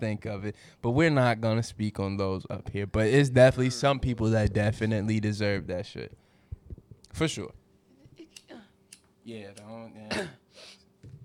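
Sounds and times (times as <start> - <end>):
speech: 0.0 - 6.2, 7.1 - 7.6, 9.3 - 10.8
coughing and throat clearing from a bug caught in the throat: 10.1 - 10.5.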